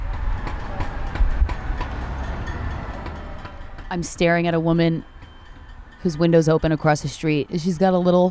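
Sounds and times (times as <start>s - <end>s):
metallic clanking heard through an open window: 0.0s - 7.2s
speech: 3.9s - 5.1s, 6.0s - 8.3s.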